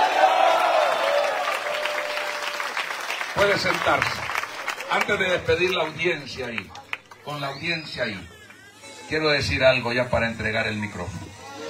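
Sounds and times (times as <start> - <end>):
audience applause: 0.0 - 7.4
speech: 3.4 - 4.3, 4.9 - 8.3, 9.1 - 11.2.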